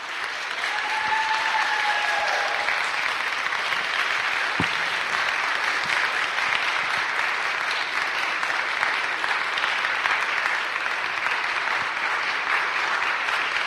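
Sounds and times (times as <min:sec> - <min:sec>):
large audience applause: 0:00.0 - 0:13.6.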